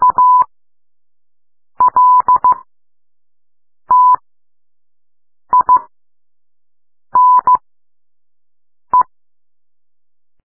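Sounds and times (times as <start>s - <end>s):
morse code beeps: 0.0s - 0.5s, 1.8s - 2.6s, 3.9s - 4.2s, 5.5s - 5.9s, 7.2s - 7.6s.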